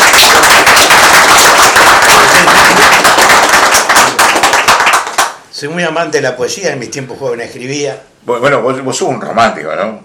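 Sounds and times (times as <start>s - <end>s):
audience applause: 0.0s - 5.4s
speech: 5.6s - 10.0s.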